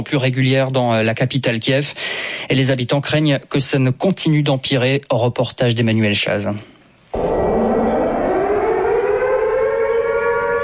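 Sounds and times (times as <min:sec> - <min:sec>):
speech: 0:00.0 - 0:06.7
air raid siren wailing: 0:07.1 - 0:10.6.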